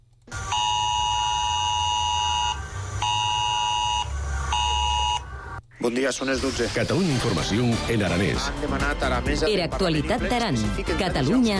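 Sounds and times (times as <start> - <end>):
civil protection mobile phone alert tone: 0.5 - 5.3
speech: 5.8 - 11.5.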